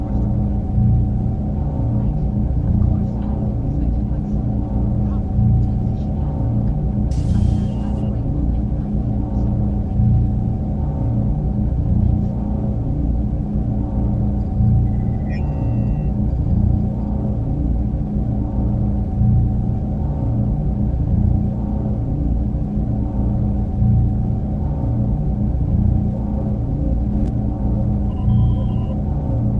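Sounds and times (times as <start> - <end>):
engineering warp core background ambience: 0.0 - 29.5.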